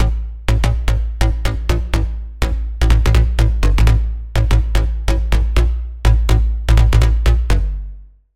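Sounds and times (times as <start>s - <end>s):
bass: 0.0s - 8.3s.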